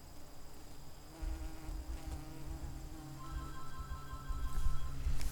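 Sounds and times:
bee buzzing: 1.1s - 5.3s.

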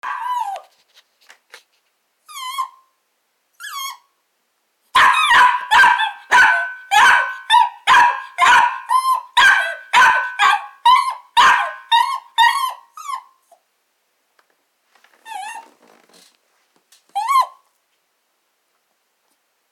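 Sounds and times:
small dog barking with a ringing echo: 0.0s - 0.6s, 4.9s - 13.3s.

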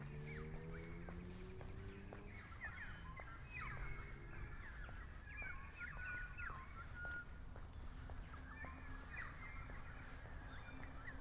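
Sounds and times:
currawongs calling: 0.0s - 11.2s.

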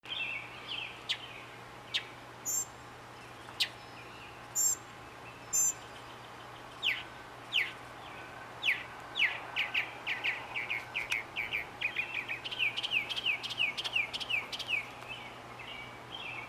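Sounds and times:
mockingbird singing whistled phrases: 0.1s - 2.7s, 3.6s - 6.2s, 6.8s - 7.8s, 8.6s - 14.9s.

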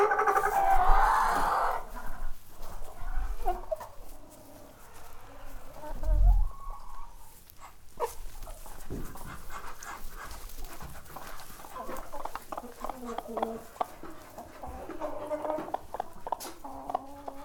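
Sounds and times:
chickens clucking and squawking in a barn: 0.0s - 17.4s.

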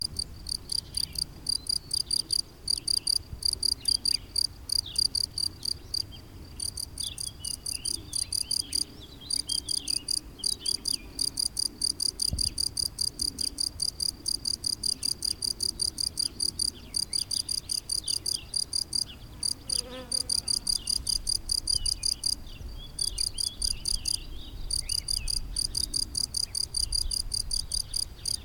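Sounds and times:
cricket chirping: 0.0s - 28.4s.

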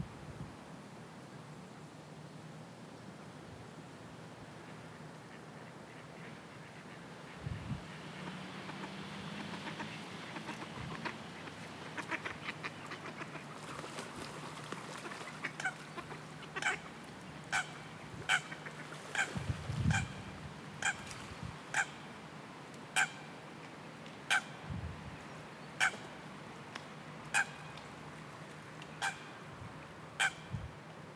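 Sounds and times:
steady background noise: 0.0s - 31.1s
waterbird calling: 4.6s - 22.2s, 22.9s - 23.4s, 24.2s - 24.6s, 25.2s - 26.2s, 27.3s - 27.8s, 28.9s - 29.4s, 30.1s - 30.6s.

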